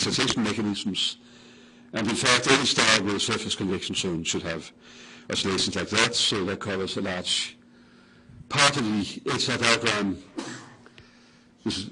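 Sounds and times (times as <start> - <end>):
speech: 0.0 - 7.6, 8.5 - 10.6, 11.6 - 11.9
person sneezing: 10.4 - 10.8.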